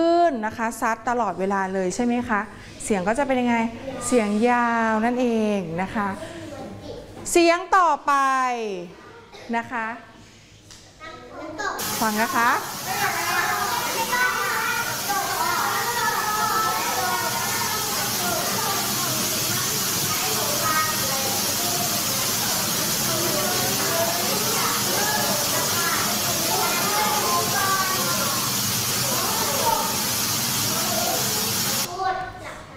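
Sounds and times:
speech: 0.4s - 6.4s, 7.2s - 10.1s, 11.5s - 13.2s
waterfall: 11.8s - 31.9s.

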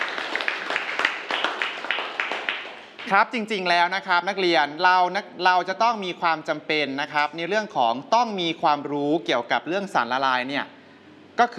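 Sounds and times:
students clapping: 0.0s - 3.2s
speech: 3.1s - 10.8s, 11.4s - 11.5s.

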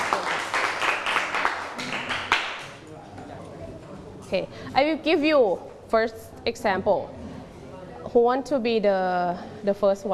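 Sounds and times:
class audience clapping: 0.0s - 2.8s
speech: 4.3s - 7.2s, 8.1s - 10.1s.

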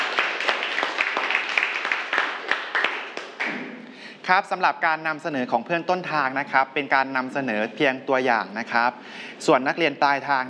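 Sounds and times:
students applauding: 0.0s - 3.8s
speech: 4.3s - 10.4s.

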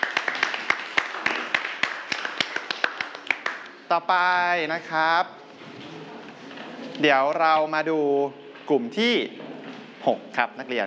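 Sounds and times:
students clapping: 0.0s - 3.9s
speech: 3.9s - 5.4s, 7.0s - 9.4s, 10.0s - 10.8s.

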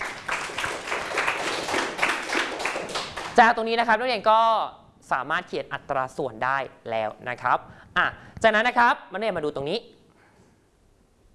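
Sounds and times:
group of students clapping together: 0.0s - 3.5s
speech: 3.4s - 10.0s.

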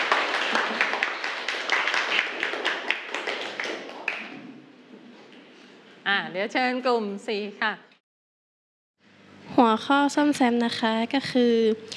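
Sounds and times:
children clapping for a group: 0.0s - 4.4s
speech: 6.3s - 7.9s, 9.6s - 11.9s.

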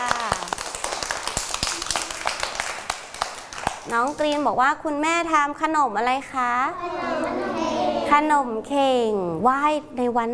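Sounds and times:
children clapping hands: 0.0s - 4.4s
speech: 3.9s - 10.3s
children chattering: 6.8s - 8.2s.

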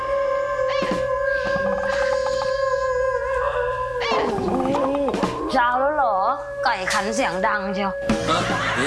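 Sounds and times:
person imitating a dog howling: 0.0s - 6.0s
speech: 6.7s - 8.8s
laughter: 8.2s - 8.8s.

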